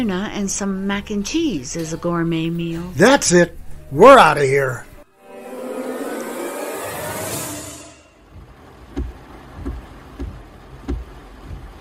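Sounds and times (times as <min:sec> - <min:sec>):
speech: 0:00.0 - 0:04.9
rain during a car drive: 0:08.3 - 0:11.7.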